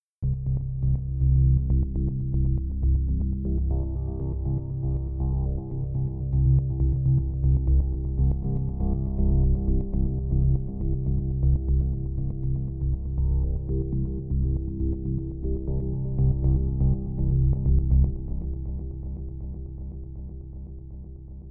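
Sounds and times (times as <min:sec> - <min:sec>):
dreamy rhythmic music: 0:00.2 - 0:21.4.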